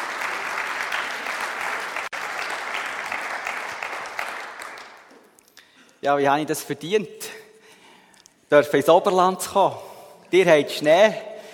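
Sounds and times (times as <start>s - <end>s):
audience applause: 0.0s - 5.1s
speech: 6.0s - 7.4s, 8.5s - 11.3s.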